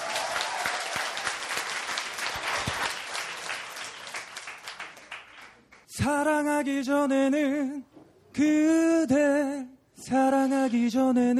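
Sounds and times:
audience applause: 0:00.0 - 0:05.8
speech: 0:06.0 - 0:11.3.

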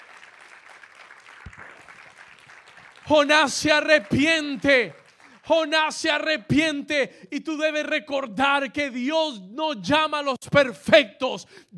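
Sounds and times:
audience applause: 0:00.0 - 0:05.7
speech: 0:03.1 - 0:11.7.

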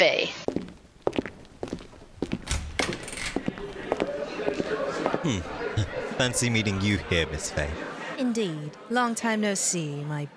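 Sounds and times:
footsteps of a couple walking into a tavern on a hard floor: 0:00.5 - 0:02.4
laughter: 0:03.6 - 0:08.8
speech: 0:05.2 - 0:10.3.

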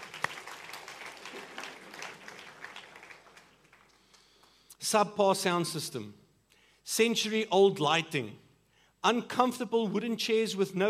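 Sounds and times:
audience applauding: 0:00.0 - 0:04.5
speech: 0:04.9 - 0:06.2, 0:06.9 - 0:08.4, 0:09.0 - 0:10.8.

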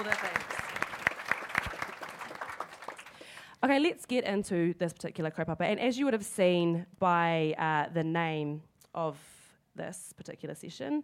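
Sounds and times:
audience applause: 0:00.0 - 0:03.4
speech: 0:03.6 - 0:11.0.

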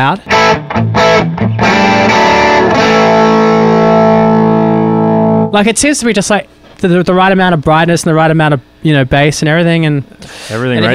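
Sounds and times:
speech: 0:00.0 - 0:01.8, 0:05.5 - 0:10.9
crunchy distorted electric guitar on the bridge pickup: 0:00.0 - 0:05.6.

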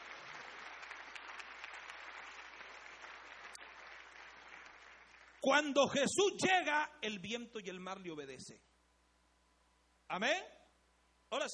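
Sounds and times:
crowd applauding: 0:00.0 - 0:06.0
speech: 0:05.4 - 0:08.7, 0:10.1 - 0:10.6, 0:11.3 - 0:11.5.

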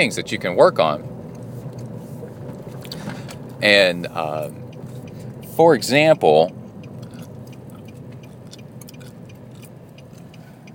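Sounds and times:
speech: 0:00.0 - 0:01.1, 0:03.6 - 0:04.6, 0:05.6 - 0:06.6
low hum: 0:00.0 - 0:10.7
gum smacking from someone chewing gum: 0:07.0 - 0:10.4.

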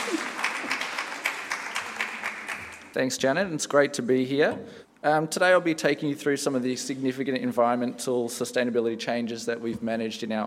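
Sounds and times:
audience clapping: 0:00.0 - 0:03.0
speech: 0:02.9 - 0:10.4.

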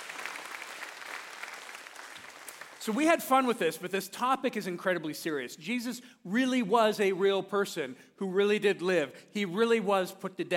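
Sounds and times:
audience applause: 0:00.0 - 0:02.9
speech: 0:02.8 - 0:10.5.

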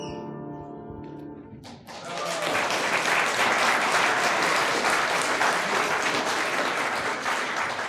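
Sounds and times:
audience applause after choir song: 0:01.7 - 0:07.8.

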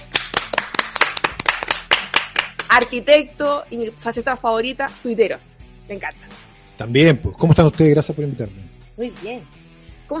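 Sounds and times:
audience applause: 0:00.0 - 0:02.7
speech: 0:02.8 - 0:10.1.

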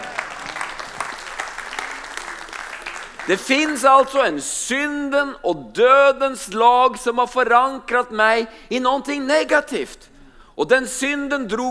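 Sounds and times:
audience applause: 0:00.0 - 0:04.3
speech: 0:03.3 - 0:11.6.

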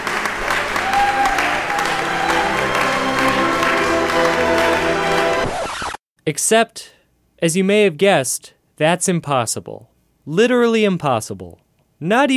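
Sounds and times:
wild applause: 0:00.0 - 0:05.8
speech: 0:06.3 - 0:12.3.

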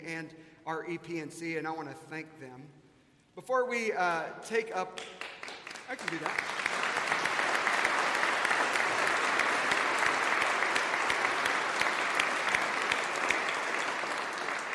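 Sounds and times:
speech: 0:00.0 - 0:02.8, 0:03.4 - 0:05.3, 0:05.9 - 0:06.6
choir clapping in worship: 0:05.0 - 0:14.7.

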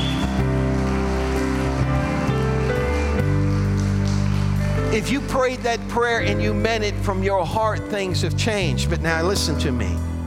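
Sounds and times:
audience applauding: 0:00.0 - 0:06.2
speech: 0:05.0 - 0:10.1.

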